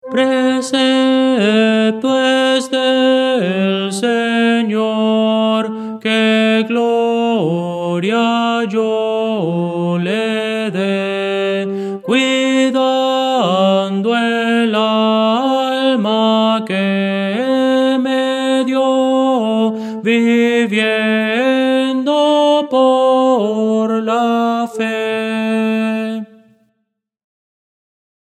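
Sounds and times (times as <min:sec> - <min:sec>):
tenor singing: 0:00.0 - 0:26.6.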